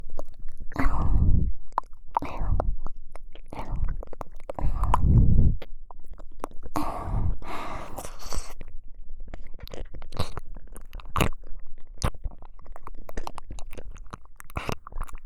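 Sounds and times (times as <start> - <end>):
ASMR ear licking in the right ear: 0.0 - 8.6, 9.4 - 15.2.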